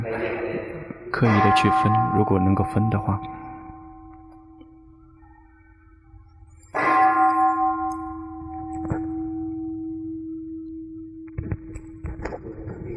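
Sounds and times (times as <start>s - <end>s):
speech: 1.2s - 3.4s
bell ringing: 1.2s - 5.6s, 6.3s - 11.2s.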